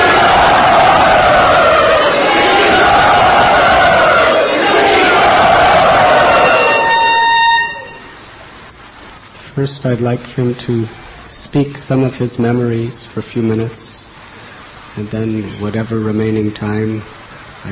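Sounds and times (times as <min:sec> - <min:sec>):
crowd cheering and shouting to welcome a visiting speaker at Sri Radha Gopinath: 0:00.0 - 0:08.1
speech: 0:09.6 - 0:14.0, 0:15.0 - 0:17.6.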